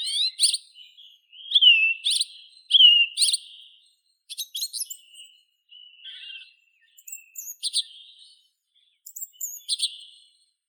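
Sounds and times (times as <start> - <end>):
song thrush Turdus philomelos singing: 0.0 - 10.4.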